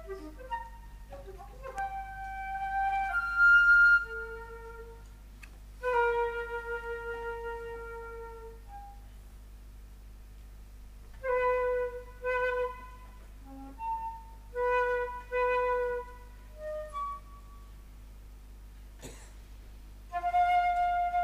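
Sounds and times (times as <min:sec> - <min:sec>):
flute: 0:00.0 - 0:05.1, 0:05.8 - 0:09.2, 0:11.1 - 0:17.8, 0:20.1 - 0:21.2.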